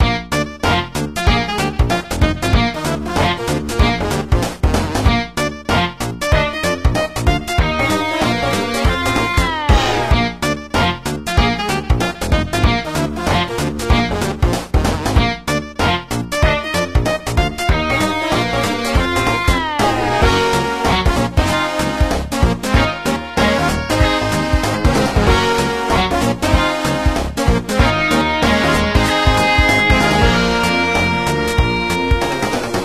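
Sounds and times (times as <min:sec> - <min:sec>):
guitar: 0:00.0 - 0:32.8.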